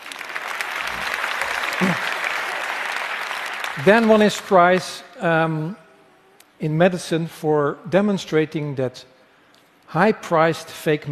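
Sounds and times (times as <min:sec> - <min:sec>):
audience applause: 0:00.0 - 0:04.8
speech: 0:03.8 - 0:05.8, 0:06.6 - 0:09.1, 0:09.9 - 0:11.1.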